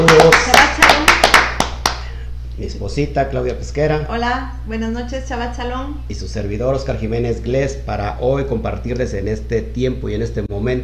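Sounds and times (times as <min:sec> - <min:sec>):
applause: 0:00.0 - 0:02.1
low steady hum: 0:00.0 - 0:10.8
speech: 0:02.8 - 0:10.8.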